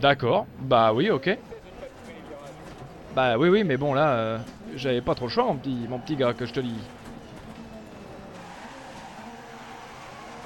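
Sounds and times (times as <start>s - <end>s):
speech: 0.0s - 1.5s, 3.2s - 7.0s
racing car engine in the video game DiRT 2.0: 0.5s - 10.4s
tires skidding as a car is shoved off the track: 1.4s - 10.4s.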